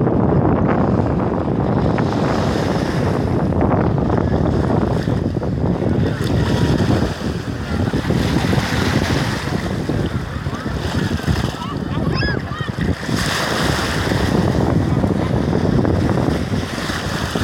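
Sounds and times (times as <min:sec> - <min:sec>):
waves at the beach: 0:00.0 - 0:17.4
wind at the beach: 0:00.0 - 0:17.4
children's voices: 0:11.5 - 0:12.9.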